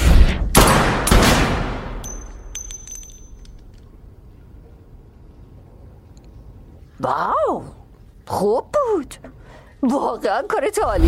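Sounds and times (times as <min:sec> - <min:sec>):
gunshots from a Colt pistol: 0:00.6 - 0:02.0
thin high metallic ring: 0:02.0 - 0:03.6
speech: 0:07.0 - 0:11.0.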